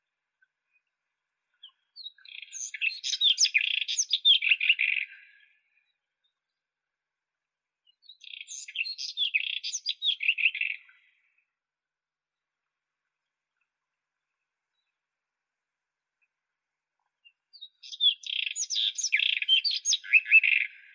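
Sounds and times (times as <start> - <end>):
white-throated robin Irania gutturalis: 1.6 - 5.6, 7.9 - 11.2, 17.5 - 20.9.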